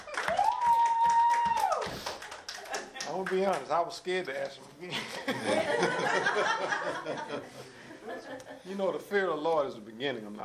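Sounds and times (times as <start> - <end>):
audience clapping in rhythm: 0.0 - 4.6
speech: 3.2 - 10.4
laughter: 4.8 - 8.7.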